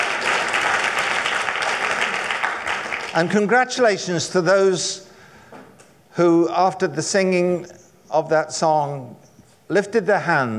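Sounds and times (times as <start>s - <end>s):
crowd applause: 0.0s - 3.4s
speech: 3.1s - 5.1s, 6.2s - 10.5s.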